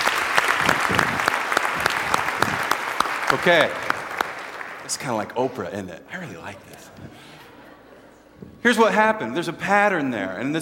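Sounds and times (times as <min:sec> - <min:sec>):
audience applause: 0:00.0 - 0:05.4
speech: 0:03.3 - 0:03.8, 0:04.9 - 0:07.4, 0:08.6 - 0:10.6.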